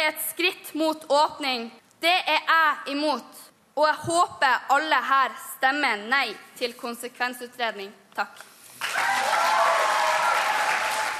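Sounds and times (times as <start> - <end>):
speech: 0.1 - 9.1
audience applause at a party meeting: 8.8 - 11.1.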